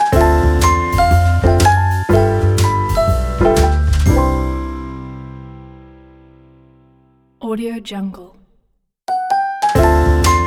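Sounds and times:
jazz logo intro: 0:00.1 - 0:05.7, 0:09.8 - 0:10.4.

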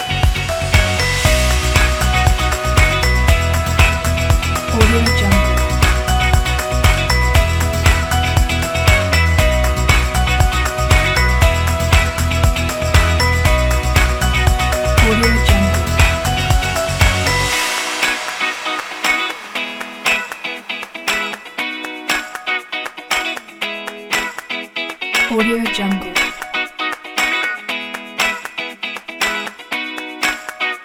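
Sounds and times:
bells: 0:00.0 - 0:22.4
fun guitar: 0:00.0 - 0:30.8.

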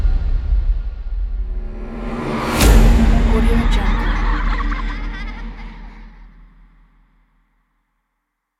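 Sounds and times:
horror music: 0:00.1 - 0:06.8.

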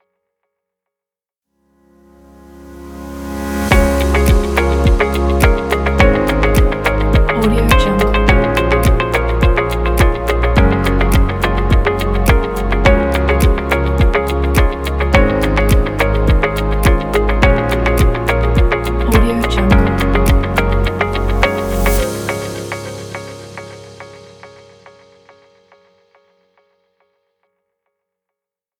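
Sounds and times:
upbeat corporate background music: 0:03.6 - 0:24.7.

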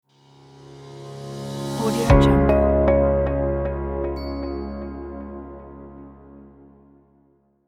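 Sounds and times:
bright logo jingle: 0:00.9 - 0:06.4.

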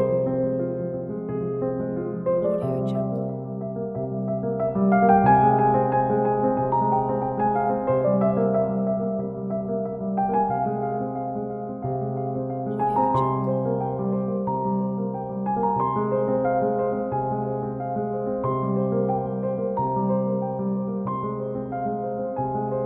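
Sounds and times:
sad classical piano: 0:00.0 - 0:22.8.

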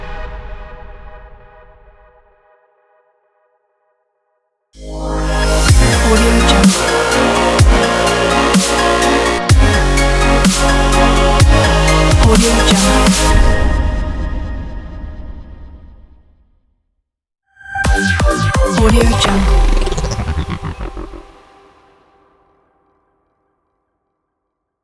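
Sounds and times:
futuristic dubstep logo sting: 0:04.8 - 0:13.3, 0:17.6 - 0:21.9.

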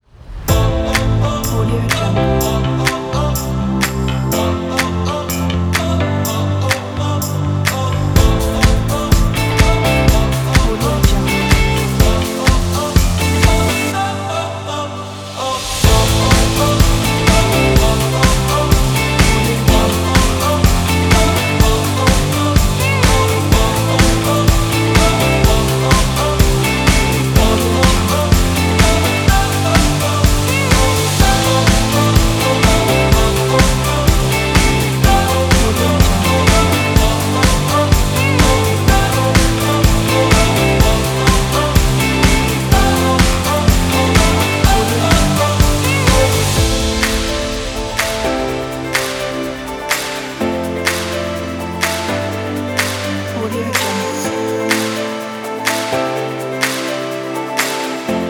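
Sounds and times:
indie light pop rock music: 0:00.5 - 0:58.2.

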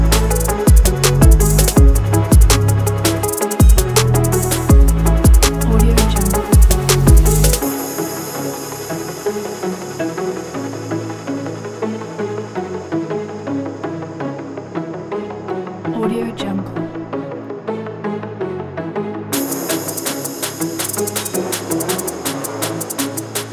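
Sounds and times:
hip hop music: 0:00.0 - 0:11.3, 0:19.4 - 0:23.5.

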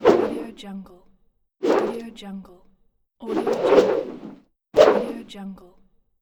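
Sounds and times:
whooshes: 0:00.0 - 0:00.5, 0:01.6 - 0:02.0, 0:03.3 - 0:05.2.

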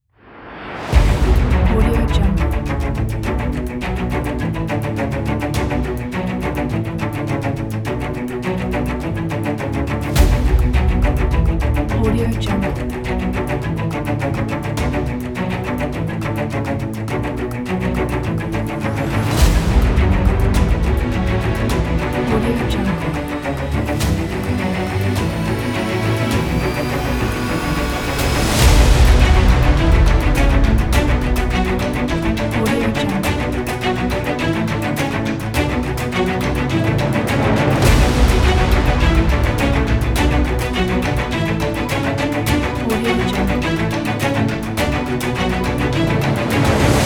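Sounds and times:
epic cinematic dramatic adventure Hollywood trailer music: 0:00.2 - 0:47.0.

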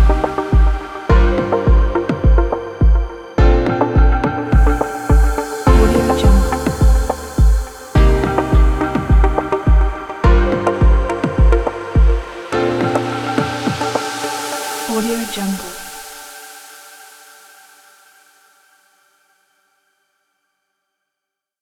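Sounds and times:
fashion wave electronic music: 0:00.0 - 0:17.2.

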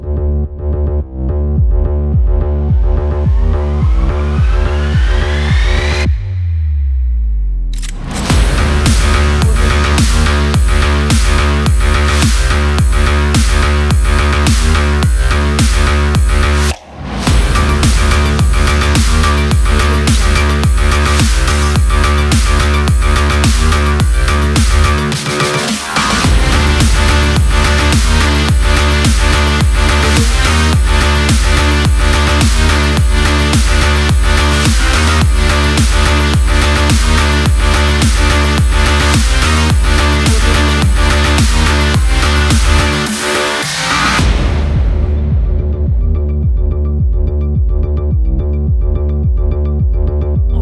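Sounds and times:
extreme sports intro music: 0:00.3 - 0:50.5.

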